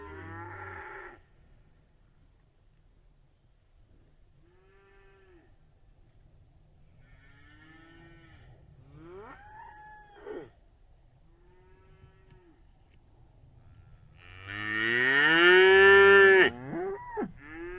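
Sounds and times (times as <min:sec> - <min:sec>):
cattle: 0:04.4 - 0:05.6, 0:07.0 - 0:10.6, 0:11.3 - 0:13.0, 0:13.6 - 0:17.7.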